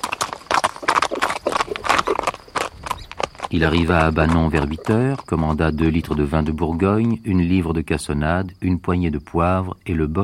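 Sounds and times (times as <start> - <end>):
horse hooves trotting: 0.0 - 7.8
speech: 3.5 - 10.2.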